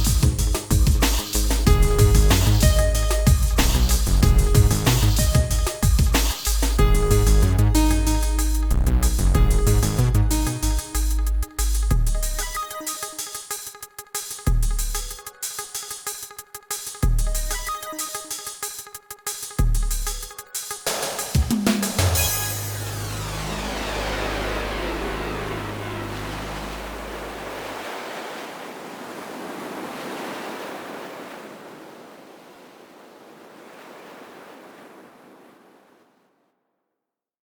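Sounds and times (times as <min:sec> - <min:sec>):
retrowave music on Amiga: 0:00.0 - 0:27.4.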